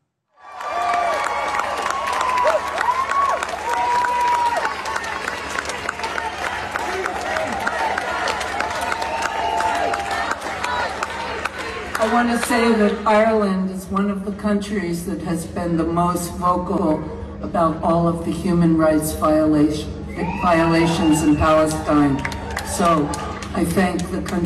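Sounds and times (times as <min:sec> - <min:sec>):
crowd applauding at a concert in Ireland: 0:00.4 - 0:12.5, 0:20.9 - 0:24.1
speech: 0:12.2 - 0:24.4.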